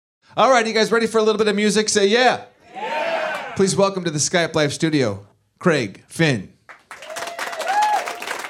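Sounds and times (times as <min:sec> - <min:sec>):
speech: 0:00.3 - 0:02.5, 0:03.6 - 0:06.6
studio audience applause: 0:06.8 - 0:08.4.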